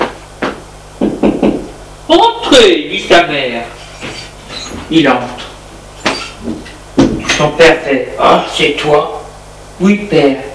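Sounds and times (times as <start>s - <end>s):
knocking on a wooden door: 0.0s - 1.7s, 6.0s - 7.3s
speech: 2.1s - 3.8s, 4.9s - 5.4s, 7.4s - 9.2s, 9.8s - 10.5s.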